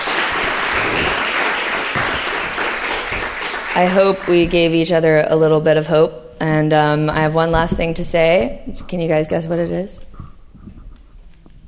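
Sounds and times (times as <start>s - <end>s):
audience applause: 0.0s - 4.4s
speech: 3.8s - 10.1s.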